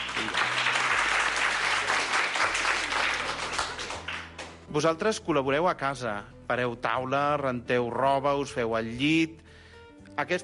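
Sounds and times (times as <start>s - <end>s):
applause: 0.0s - 4.6s
speech: 4.7s - 9.4s, 10.2s - 10.4s.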